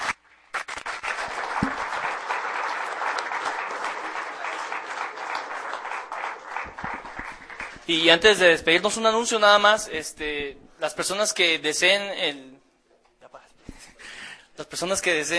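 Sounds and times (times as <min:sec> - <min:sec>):
loud crowd applause: 0:00.0 - 0:08.2
speech: 0:07.9 - 0:12.5, 0:14.6 - 0:15.3.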